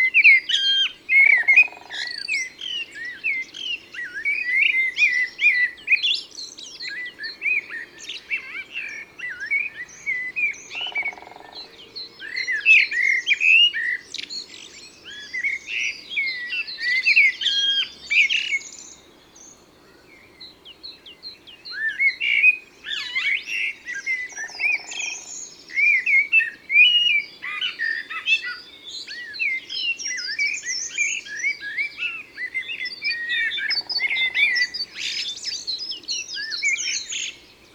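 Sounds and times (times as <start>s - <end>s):
common blackbird singing: 0.0s - 19.5s, 20.4s - 37.7s
other songbirds twittering in chorus: 9.3s - 12.4s, 22.9s - 26.5s, 27.4s - 37.6s.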